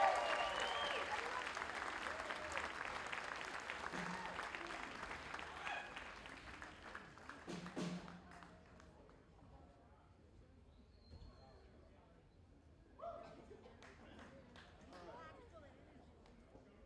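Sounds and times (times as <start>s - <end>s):
audience applause: 0.0s - 8.5s.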